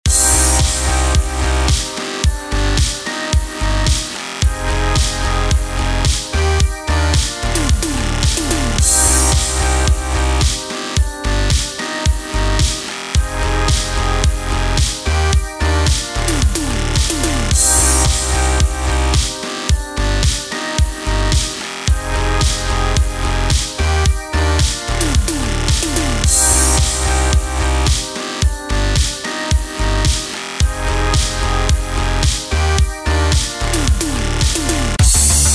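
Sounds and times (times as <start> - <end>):
synthwave music: 0.0 - 35.5.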